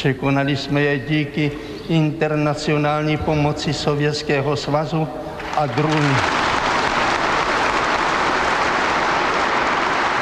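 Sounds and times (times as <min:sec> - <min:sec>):
speech: 0:00.0 - 0:06.5
applause and cheering at party congress: 0:05.4 - 0:10.2.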